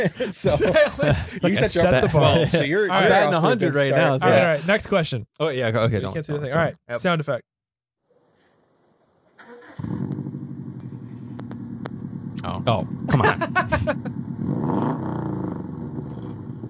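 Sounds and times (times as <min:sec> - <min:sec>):
laughter: 0:00.0 - 0:04.7, 0:13.1 - 0:14.1
speech: 0:00.0 - 0:07.5, 0:12.4 - 0:14.9
BMW M3 engine revving: 0:09.6 - 0:16.6.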